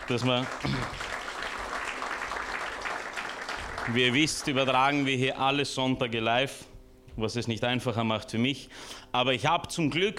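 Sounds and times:
audience applause: 0.0s - 5.2s
speech: 0.1s - 1.0s, 3.9s - 10.1s.

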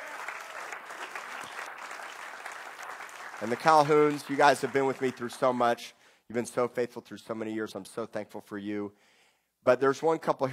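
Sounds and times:
audience hand clap: 0.0s - 5.8s
speech: 3.4s - 10.5s.

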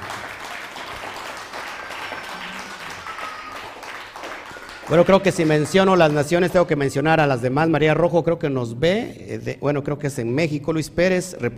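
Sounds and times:
crowd applause: 0.0s - 6.8s
faint whistles and cheers: 1.8s - 5.5s
speech: 4.9s - 11.5s.

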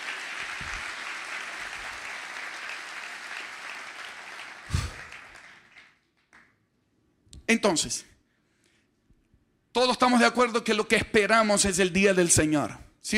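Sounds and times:
audience applause: 0.0s - 6.4s
speech: 7.5s - 8.2s, 9.8s - 13.1s.

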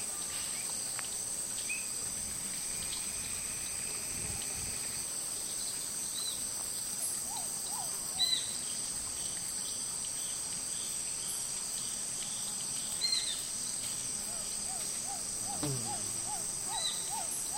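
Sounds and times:
insect drone in the Amazon rainforest on a hot afternoon: 0.1s - 17.5s
rising calls: 14.7s - 17.5s.

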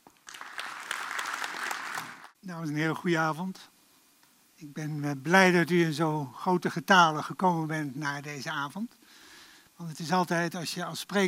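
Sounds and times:
audience applause: 0.2s - 2.4s
speech: 2.4s - 3.8s, 4.6s - 9.0s, 9.8s - 11.2s.

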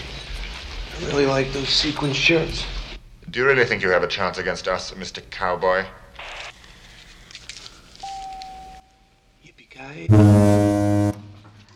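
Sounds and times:
speech: 1.0s - 6.0s, 10.0s - 10.6s
censor bleep over swear words: 8.0s - 9.1s, 10.1s - 11.2s.

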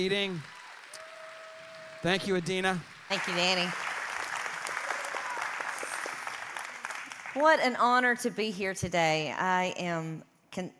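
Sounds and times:
speech: 0.0s - 0.6s, 2.0s - 3.8s, 7.4s - 10.7s
church audience applause welcoming a guest speaker: 0.0s - 7.7s.

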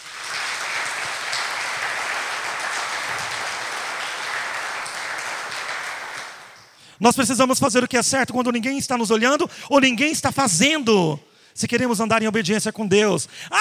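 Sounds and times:
audience applauding: 0.0s - 6.6s
speech: 7.0s - 13.5s.

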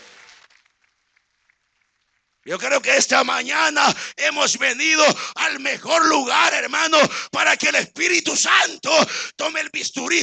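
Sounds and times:
applause: 0.0s - 2.5s
speech: 2.4s - 10.2s.

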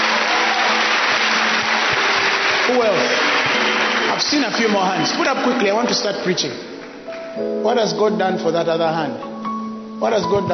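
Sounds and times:
audience clapping: 0.0s - 7.5s
speech: 2.7s - 3.2s, 4.2s - 6.7s, 7.4s - 9.3s, 10.0s - 10.5s.

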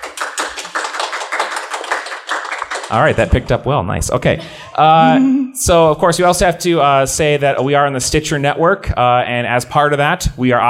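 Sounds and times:
audience applause: 0.0s - 3.6s
speech: 2.9s - 10.6s.

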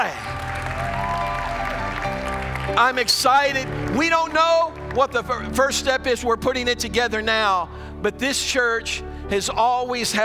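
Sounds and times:
audience clapping: 0.0s - 5.7s
speech: 2.7s - 10.2s.

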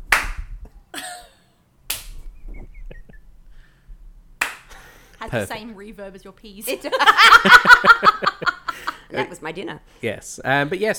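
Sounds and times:
person slow clapping: 1.9s - 2.2s, 4.4s - 4.7s
speech: 5.3s - 10.9s
laughter: 6.8s - 9.3s.

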